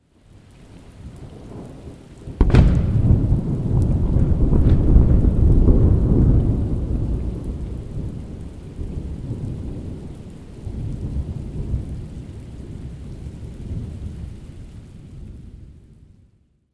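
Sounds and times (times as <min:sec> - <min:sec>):
thunderclap: 0:02.4 - 0:10.1.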